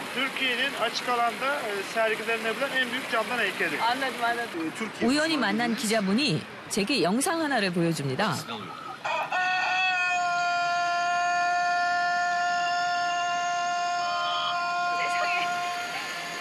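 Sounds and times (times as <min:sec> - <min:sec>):
speech: 0:00.2 - 0:08.8
chicken crowing loudly and continuously: 0:09.0 - 0:16.3.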